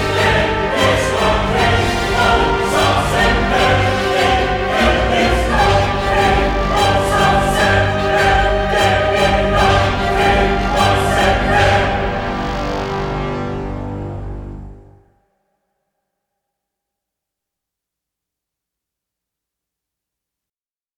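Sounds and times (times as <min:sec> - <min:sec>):
choir: 0:00.0 - 0:15.0
orchestra: 0:00.0 - 0:15.0.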